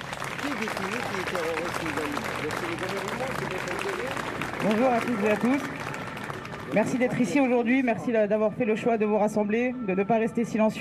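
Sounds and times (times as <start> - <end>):
crowd applauding: 0.0 - 7.6
speech: 0.6 - 5.8, 6.7 - 10.8.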